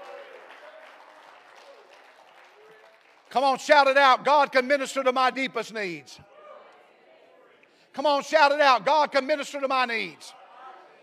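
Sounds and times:
audience clapping hands: 0.0 - 4.0
speech: 3.3 - 6.3, 8.0 - 10.4.

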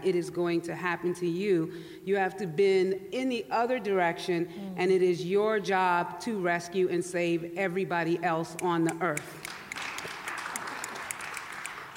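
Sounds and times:
speech: 0.0 - 9.5
audience applause: 9.4 - 11.9.

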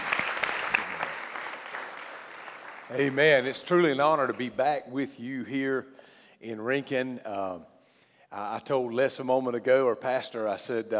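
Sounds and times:
church audience applause in Rincon: 0.0 - 4.5
speech: 2.9 - 7.7, 8.3 - 10.9.

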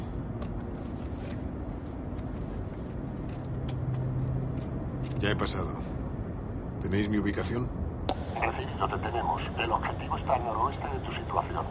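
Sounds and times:
car pulling away from a warehouse: 0.0 - 8.4
speech: 5.2 - 6.0, 6.8 - 7.8, 8.6 - 11.6.

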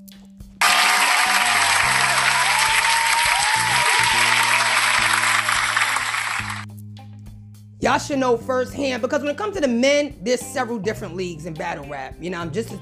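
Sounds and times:
audience applause: 0.6 - 6.6
speech: 7.9 - 12.8.

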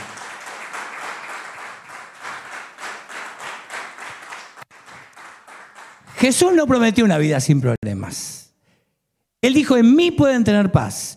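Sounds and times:
audience applause: 0.0 - 6.2
speech: 6.2 - 8.4, 9.4 - 11.1.

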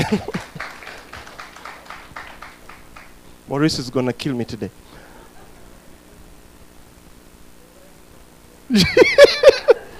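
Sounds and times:
laughter: 0.0 - 1.0, 5.0 - 6.0, 8.7 - 9.9
crowd audience applause: 0.0 - 3.2
speech: 0.1 - 0.4, 3.5 - 5.0.

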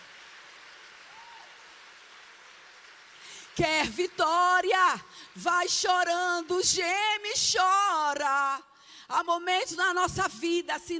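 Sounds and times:
audience applause: 0.0 - 5.5
speech: 3.6 - 10.9.

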